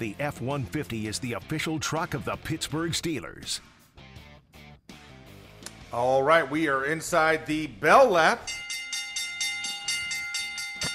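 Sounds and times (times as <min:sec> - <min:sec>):
speech: 0:00.0 - 0:03.8, 0:05.9 - 0:08.6
lunch bell ringing: 0:08.4 - 0:10.9.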